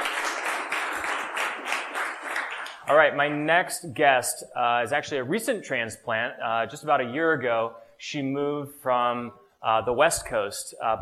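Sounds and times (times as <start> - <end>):
audience round of applause: 0.0 - 3.1
speech: 2.9 - 11.0.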